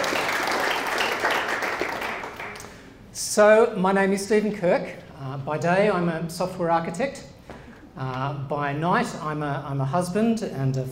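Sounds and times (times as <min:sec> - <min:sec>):
people clapping: 0:00.0 - 0:02.9
speech: 0:03.4 - 0:07.3, 0:08.0 - 0:10.8.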